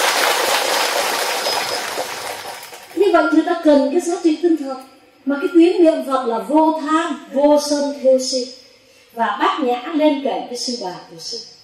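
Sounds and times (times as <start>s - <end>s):
audience applause: 0.0s - 3.0s
speech: 3.1s - 11.5s.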